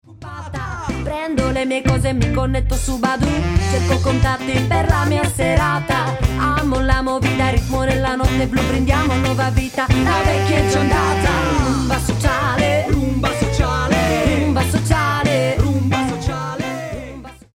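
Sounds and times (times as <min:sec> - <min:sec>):
rumba music: 0:00.1 - 0:17.5.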